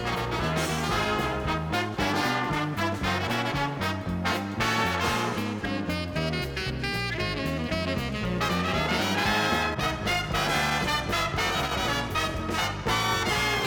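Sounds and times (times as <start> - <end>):
saxophone playing jazz, funk and soul: 0.0 - 13.6.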